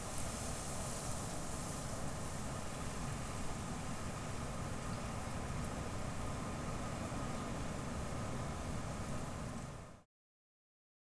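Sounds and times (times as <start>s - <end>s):
wind outdoors on a spring day: 0.0s - 10.0s.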